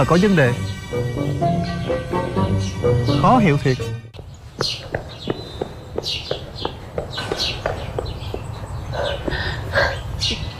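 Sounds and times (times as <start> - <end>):
speech: 0.0 - 4.0
footsteps of someone running: 4.2 - 10.4.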